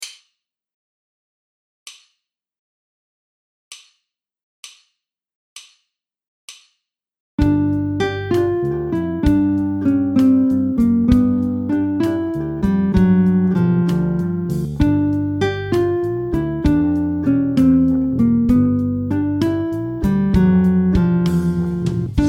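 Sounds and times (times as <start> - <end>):
musical riff: 7.4 - 22.2.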